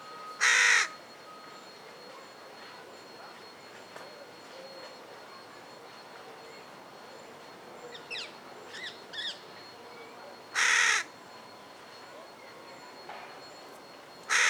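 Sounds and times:
Carrion crow cawing, Corvus corone: 0:00.4 - 0:01.0, 0:10.6 - 0:11.1, 0:14.3 - 0:14.4.

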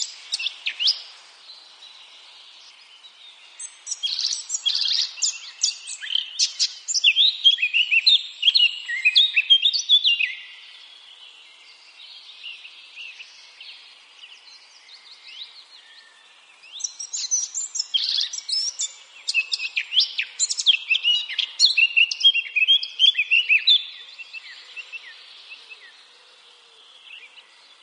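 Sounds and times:
Eurasian blackcap singing: 0:00.0 - 0:01.1, 0:03.5 - 0:10.5, 0:16.6 - 0:25.2.

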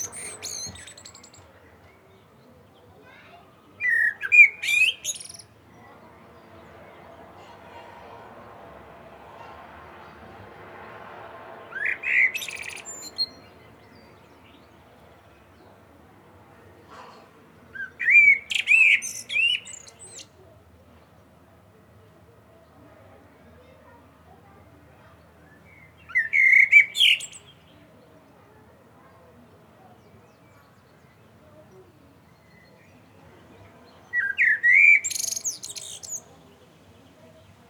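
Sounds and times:
Common blackbird song: 0:00.0 - 0:07.9, 0:11.6 - 0:16.0, 0:17.6 - 0:21.3, 0:25.2 - 0:28.4, 0:29.0 - 0:37.6
steady background rush of noise: 0:05.5 - 0:16.8.

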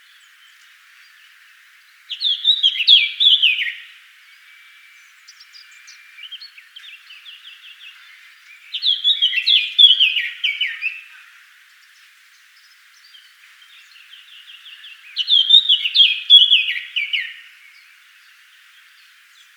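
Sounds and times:
Eurasian blackcap singing: 0:02.1 - 0:03.9, 0:05.3 - 0:11.1, 0:13.1 - 0:17.5.

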